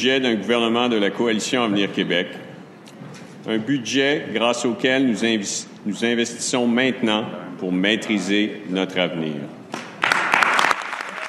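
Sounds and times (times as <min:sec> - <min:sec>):
speech: 0:00.0 - 0:02.5, 0:03.4 - 0:09.6
legislators in parliament applauding: 0:09.8 - 0:11.2.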